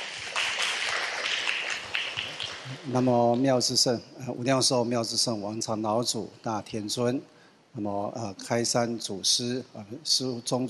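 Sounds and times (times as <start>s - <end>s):
audience applause welcoming a speaker at a ceremony: 0.0s - 2.9s
speech: 2.7s - 10.6s.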